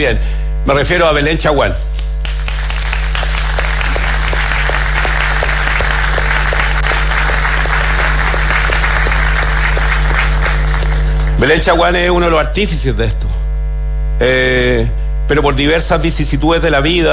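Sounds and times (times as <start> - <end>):
speech: 0.0 - 2.0, 11.4 - 13.3, 14.2 - 17.1
audience applause: 2.2 - 11.5.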